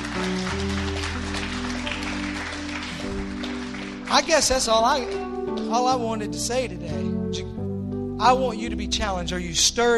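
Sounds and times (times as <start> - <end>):
audience clapping: 0.0 - 5.7
organ chords: 0.0 - 9.9
speech: 4.1 - 7.5, 8.2 - 9.9.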